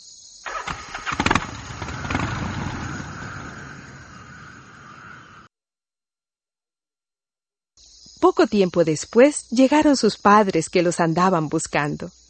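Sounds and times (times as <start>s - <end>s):
jet-propelled vacuum cleaner engine starting: 0.5s - 2.7s
speech: 8.2s - 12.2s.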